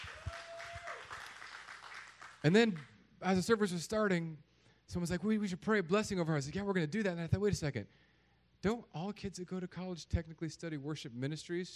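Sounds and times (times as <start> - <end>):
audience applause: 0.0 - 2.9
speech: 2.4 - 11.7.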